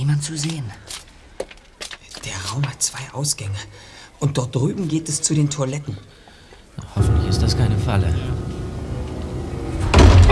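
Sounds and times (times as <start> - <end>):
speech: 0.2 - 0.9, 2.2 - 6.2, 6.8 - 8.4
rumble: 6.8 - 10.3
door slamming shut: 7.0 - 10.3.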